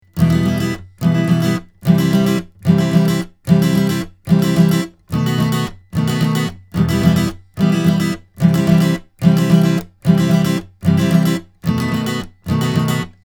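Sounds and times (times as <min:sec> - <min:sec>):
Astin Origin Flat acoustic guitar: 0:00.0 - 0:13.2.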